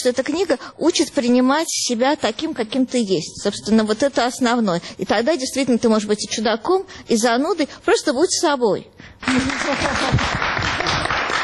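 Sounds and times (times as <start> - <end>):
speech: 0.0 - 10.9
audience applause: 9.2 - 11.4.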